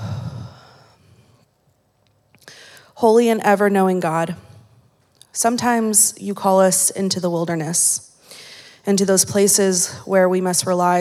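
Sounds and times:
congregation taking a collective deep breath before prayers: 0.0s - 1.4s
speech: 3.0s - 4.5s, 5.4s - 11.0s.

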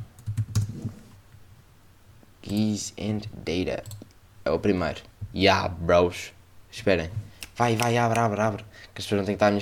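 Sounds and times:
typing a search on a computer keyboard: 0.2s - 0.7s
speech: 2.4s - 9.6s.

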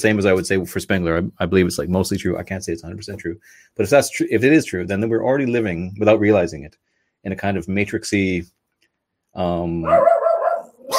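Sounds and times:
speech: 0.0s - 8.6s, 9.3s - 10.2s
dog barking: 9.9s - 10.9s.

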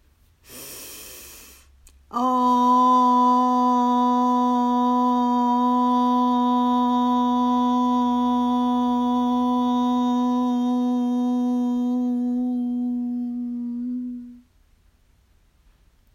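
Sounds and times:
sharp inhaled breath: 0.4s - 1.8s
group chanting a long OM tone: 2.1s - 14.4s.

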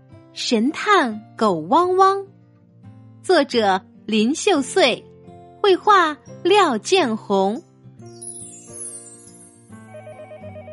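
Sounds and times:
speech: 0.4s - 2.4s, 3.2s - 7.7s
telephone ringing with an electronic ringtone: 9.9s - 10.7s.

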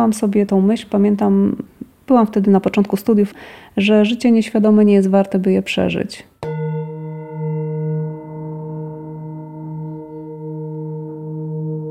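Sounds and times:
speech: 0.0s - 6.3s
singing bowl gong struck: 6.4s - 11.8s.

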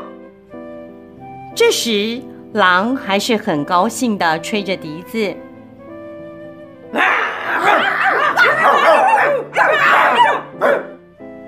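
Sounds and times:
speech: 1.6s - 5.5s
several sheepdogs barking excitedly: 7.0s - 11.0s.

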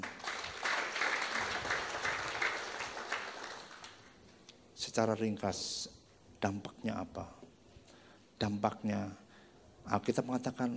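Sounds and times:
audience applause: 0.0s - 4.1s
speech: 5.0s - 7.4s, 8.4s - 9.2s, 9.8s - 10.7s.

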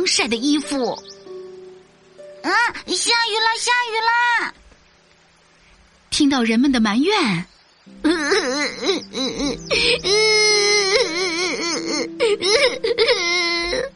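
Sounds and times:
speech: 0.0s - 1.2s, 2.4s - 4.6s, 6.1s - 13.9s
performer sobbing and wailing, acting out weeping: 8.0s - 13.9s.

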